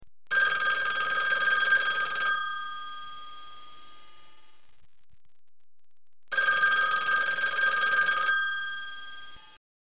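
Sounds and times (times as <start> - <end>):
telephone: 0.3 - 4.0, 6.3 - 9.6.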